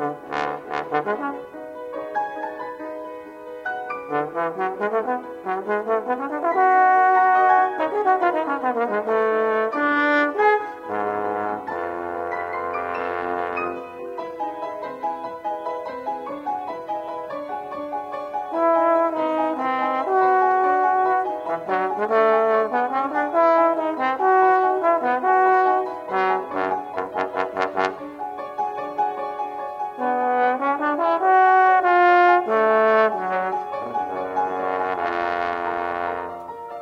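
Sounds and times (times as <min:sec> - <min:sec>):
trombone: 0:00.0 - 0:01.7, 0:03.9 - 0:14.3, 0:18.4 - 0:28.2, 0:29.8 - 0:36.8
piano: 0:00.0 - 0:36.8.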